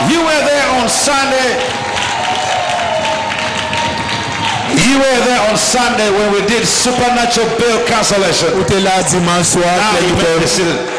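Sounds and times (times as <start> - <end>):
congregation giving a standing ovation at a church service: 0.0 - 10.9
speech: 4.8 - 10.9.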